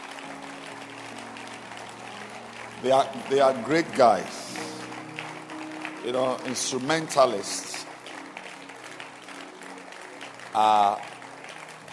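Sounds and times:
crowd clapping: 0.0 - 11.9
speech: 2.8 - 4.8, 6.0 - 7.9, 10.6 - 11.1.

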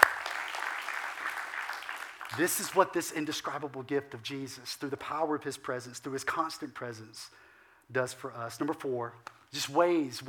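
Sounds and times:
audience clapping hands in praise: 0.0 - 2.9
speech: 2.3 - 10.2.

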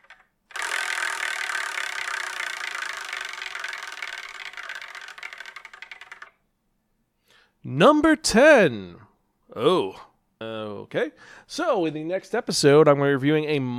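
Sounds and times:
prize wheel spinning: 0.0 - 6.4
speech: 7.6 - 10.1, 10.8 - 13.7.

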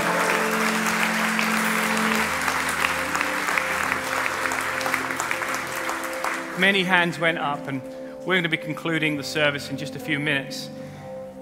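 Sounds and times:
church congregation applauding after a prayer: 0.0 - 9.1
speech: 6.6 - 10.8.

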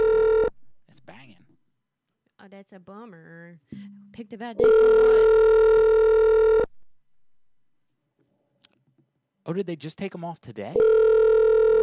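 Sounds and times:
telephone ringback tone on an outgoing call: 0.0 - 0.5, 4.6 - 6.7, 10.8 - 11.8
speech: 2.6 - 6.0, 9.5 - 11.2.

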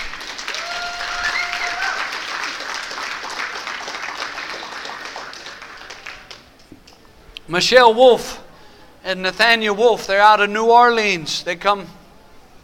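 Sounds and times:
audience applauding: 0.0 - 6.7
speech: 7.5 - 8.4, 9.0 - 12.0.

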